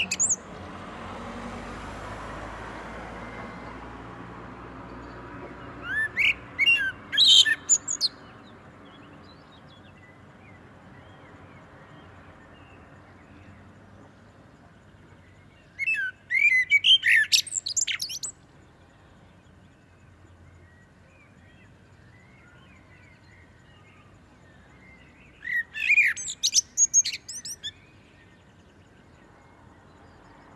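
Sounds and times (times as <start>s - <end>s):
Common blackbird song: 4.9s - 13.7s, 15.2s - 28.6s.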